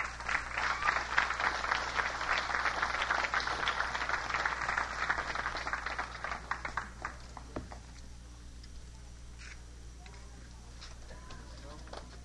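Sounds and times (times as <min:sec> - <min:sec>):
audience clapping: 0:00.0 - 0:08.0.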